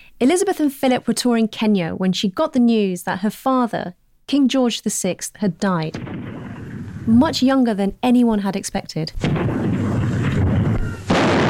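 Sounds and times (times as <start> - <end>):
speech: 0.2 - 6.5, 7.1 - 9.6
artillery gun salute fired by the Honourable Artillery Company at the Tower: 5.9 - 7.4, 9.2 - 11.4
steady rumbling noise: 5.9 - 7.8, 9.2 - 11.4.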